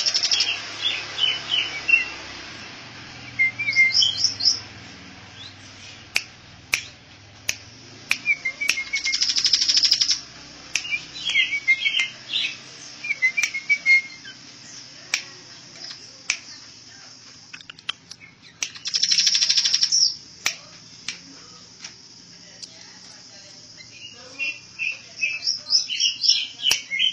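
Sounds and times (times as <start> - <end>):
bird singing trill, chirps and whistles: 0.0 - 2.5, 3.2 - 7.0, 8.1 - 14.9, 17.6 - 20.2, 23.8 - 27.1.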